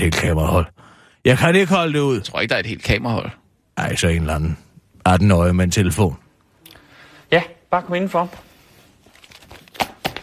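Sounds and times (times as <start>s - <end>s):
speech: 0.0s - 6.2s, 7.3s - 8.5s
stacks of papers tapped on a desk: 9.5s - 10.2s.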